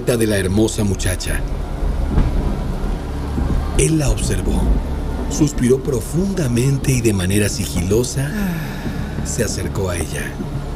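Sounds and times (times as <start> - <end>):
speech: 0.0 - 2.3, 3.8 - 10.6
thunder clap: 1.4 - 7.8.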